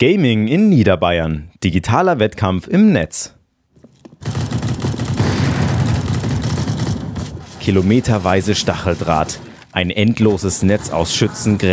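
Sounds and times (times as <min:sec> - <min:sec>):
speech: 0:00.0 - 0:03.4, 0:07.6 - 0:11.7
gunfire, artillery and explosions in a World War I trench-warfare video game: 0:03.8 - 0:11.7.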